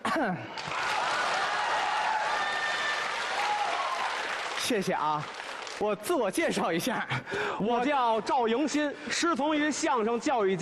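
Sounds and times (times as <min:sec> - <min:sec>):
speech: 0:00.2 - 0:00.8, 0:04.7 - 0:10.5
audience applause: 0:00.6 - 0:05.8.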